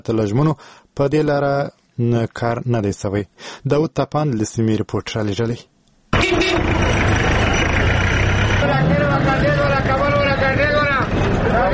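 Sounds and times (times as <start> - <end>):
speech: 0.0 - 7.2, 8.6 - 10.1
car engines running at a vehicle stand in Khost: 6.2 - 11.7
drivers shouting for passengers at a vehicle stand in Khost: 6.2 - 11.7.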